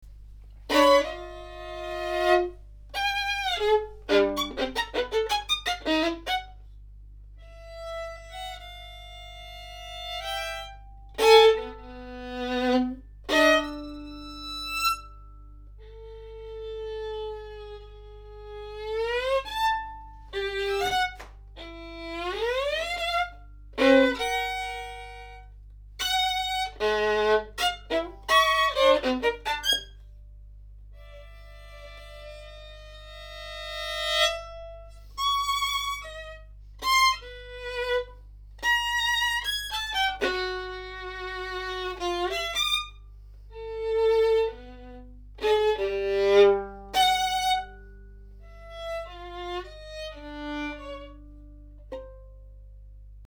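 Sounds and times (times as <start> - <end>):
violin: 0.0 - 30.2, 30.9 - 52.8.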